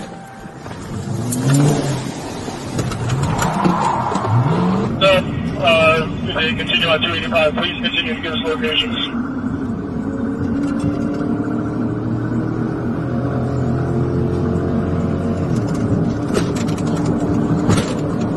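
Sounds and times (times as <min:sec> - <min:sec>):
car engine revving and accelerating as the car drives away: 0:00.7 - 0:18.3
speech: 0:06.5 - 0:09.1.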